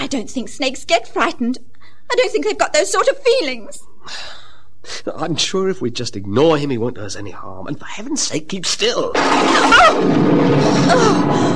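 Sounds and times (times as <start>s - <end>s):
speech: 0.1s - 11.5s
thunderclap rumbling: 9.2s - 11.5s.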